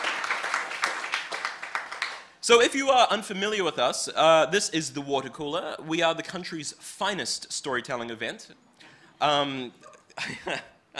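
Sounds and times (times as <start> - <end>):
audience applause: 0.0 - 2.3
speech: 2.4 - 10.7.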